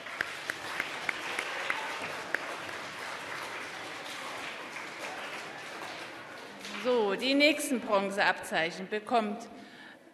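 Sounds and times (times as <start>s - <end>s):
applause: 0.0s - 7.6s
speech: 6.8s - 9.6s.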